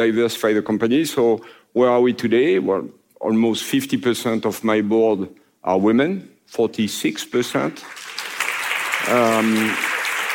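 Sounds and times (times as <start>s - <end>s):
speech: 0.0s - 8.0s, 9.0s - 9.9s
audience applause: 7.8s - 10.3s.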